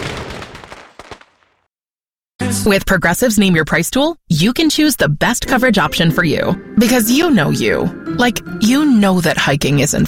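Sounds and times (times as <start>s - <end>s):
fireworks exploding: 0.0s - 1.7s
speech: 2.5s - 10.0s.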